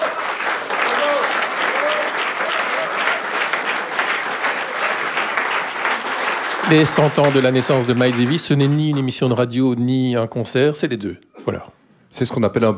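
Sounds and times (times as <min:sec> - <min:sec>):
audience applause for jazz band: 0:00.0 - 0:09.5
speech: 0:06.7 - 0:12.7.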